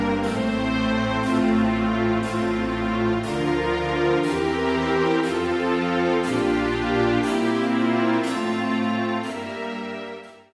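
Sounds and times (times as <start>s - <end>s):
strings playing in F major: 0.0s - 10.5s.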